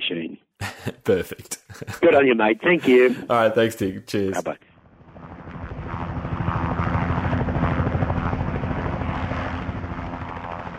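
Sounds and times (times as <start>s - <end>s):
laughter: 0.6s - 3.6s
speech: 1.1s - 4.6s
helicopter flying overhead: 3.7s - 10.7s.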